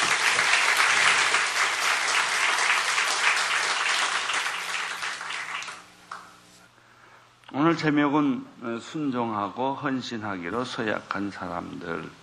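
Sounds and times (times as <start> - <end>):
audience applause: 0.0 - 6.2
speech: 7.7 - 12.2.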